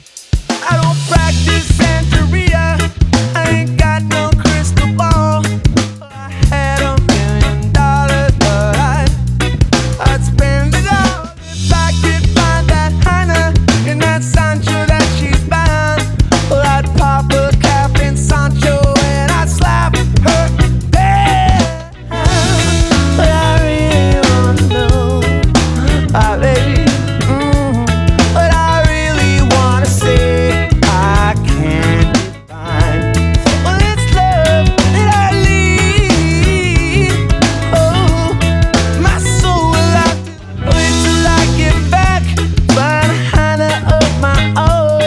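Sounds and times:
intro outro music at 91 bpm: 0.4s - 5.8s, 6.5s - 44.9s.

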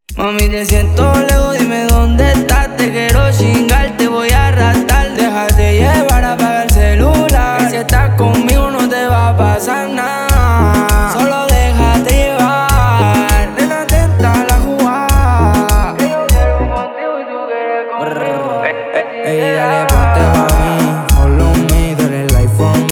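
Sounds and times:
remix music: 0.1s - 17.3s, 18.1s - 22.9s.

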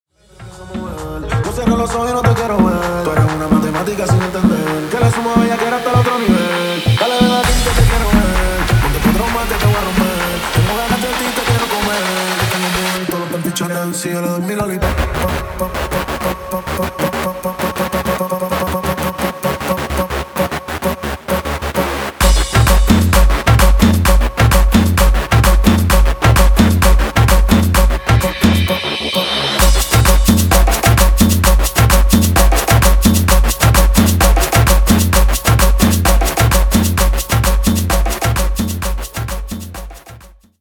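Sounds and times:
guaracha remix music: 0.2s - 40.4s.

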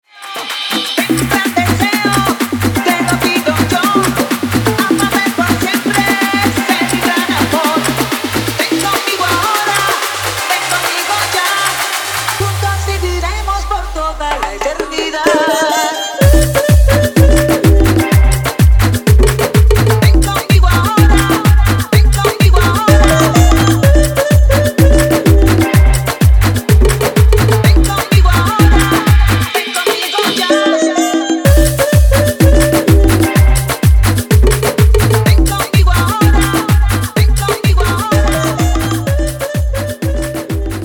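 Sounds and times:
afro dance remix at 126 bpm: 0.0s - 40.8s.

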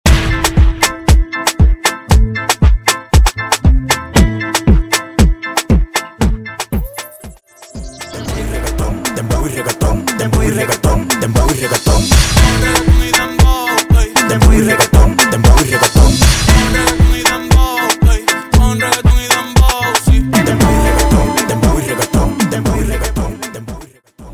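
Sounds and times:
dembow and reggaeton beat at 117 BPM: 0.1s - 24.3s.

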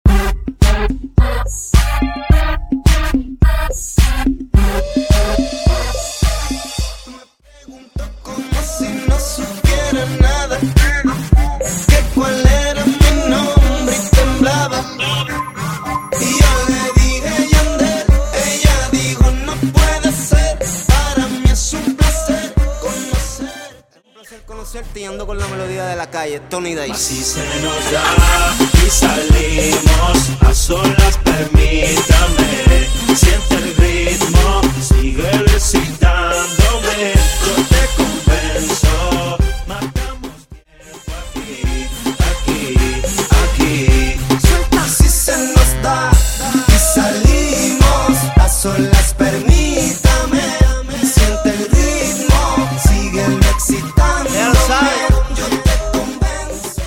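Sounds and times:
intro and outro music: 0.1s - 23.7s, 24.4s - 56.8s.

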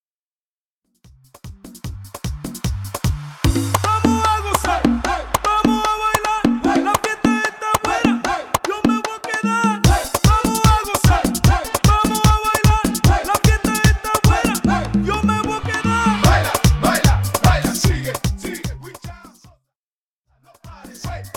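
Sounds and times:
intro outro music: 1.1s - 8.8s, 9.9s - 18.7s.

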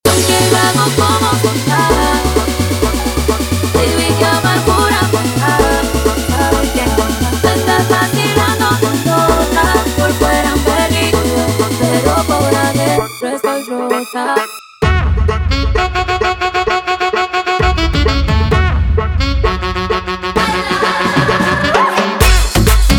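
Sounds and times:
guaracha remix music: 0.0s - 22.9s.

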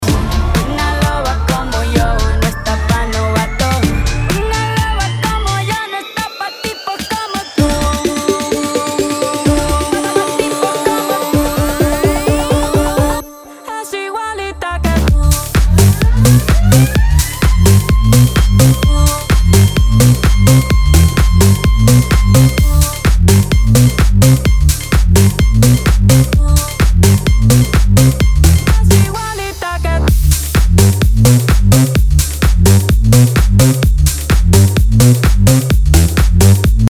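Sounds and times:
128 bpm remix music: 0.0s - 36.8s.

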